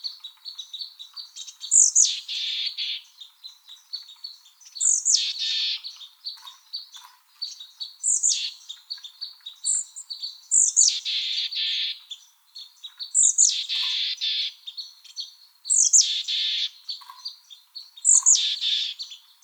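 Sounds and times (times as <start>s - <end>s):
Mexican Chickadee calls with high thin and harsh buzzy notes: 0.0s - 19.4s.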